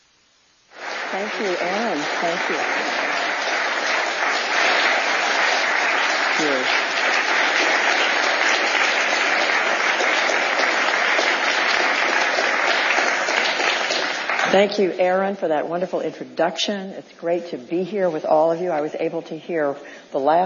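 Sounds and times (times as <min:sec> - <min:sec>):
audience applause welcoming a panel onto the stage: 0:00.7 - 0:14.8
speech: 0:01.1 - 0:03.2, 0:06.4 - 0:06.8, 0:14.5 - 0:20.4.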